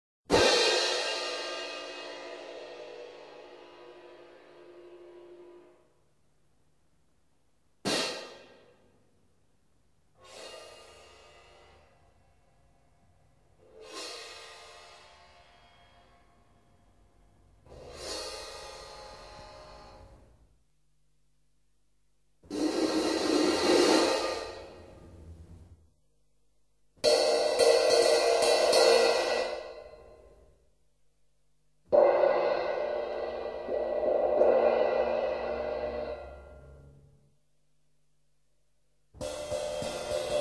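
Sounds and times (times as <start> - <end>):
cymbals: 0.3 - 5.8, 7.8 - 8.8, 10.2 - 12.5, 13.6 - 16.8, 17.7 - 20.4, 22.5 - 25.4, 27.0 - 30.6, 31.9 - 37.2, 39.2 - 40.3.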